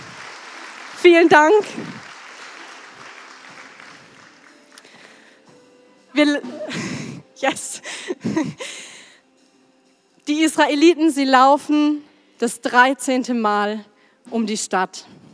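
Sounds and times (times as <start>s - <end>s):
audience applause: 0.0s - 5.4s
speech: 1.0s - 2.0s, 6.2s - 6.8s, 7.4s - 8.9s, 10.3s - 15.2s.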